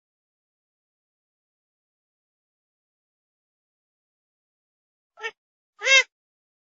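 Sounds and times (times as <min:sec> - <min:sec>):
grey-headed swamphen calls: 0:05.2 - 0:06.0.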